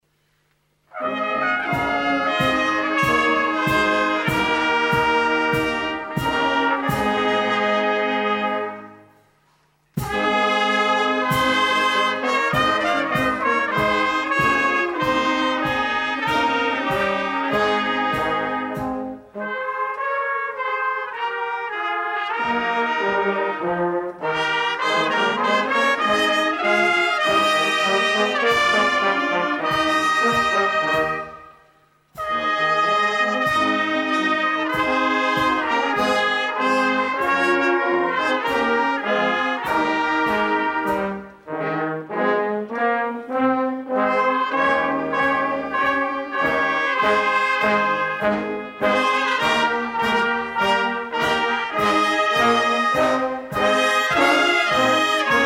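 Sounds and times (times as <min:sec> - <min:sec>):
fanfare: 0:00.9 - 0:55.4.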